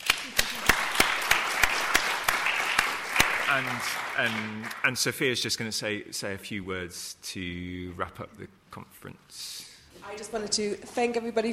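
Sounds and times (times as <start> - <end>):
audience round of applause: 0.0 - 5.2
speech: 3.5 - 11.5.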